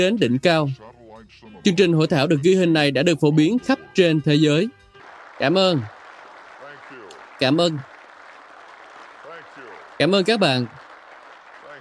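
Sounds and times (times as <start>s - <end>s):
speech: 0.0s - 4.8s, 5.4s - 6.0s, 7.4s - 7.9s, 10.0s - 10.8s
audience applause: 5.0s - 11.8s.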